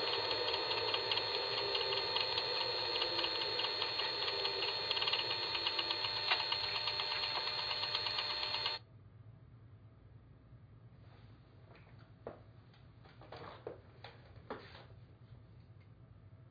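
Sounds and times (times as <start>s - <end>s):
turbo: 0.0s - 8.8s.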